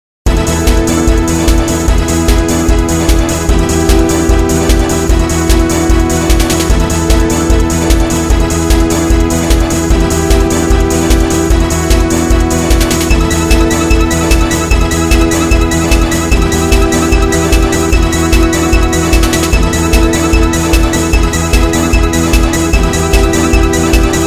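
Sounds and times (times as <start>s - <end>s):
battle music: 0.3s - 24.2s.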